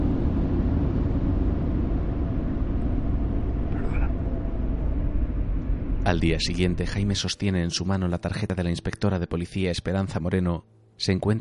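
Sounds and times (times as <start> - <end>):
car being driven fast: 0.0 - 6.2
speech: 6.1 - 11.3.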